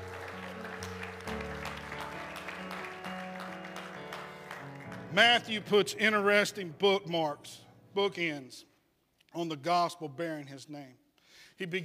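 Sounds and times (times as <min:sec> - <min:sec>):
audience hand clapping: 0:00.0 - 0:05.7
sustained organ-like musical chord: 0:00.0 - 0:07.1
speech: 0:05.2 - 0:08.7, 0:09.3 - 0:11.0, 0:11.6 - 0:11.8.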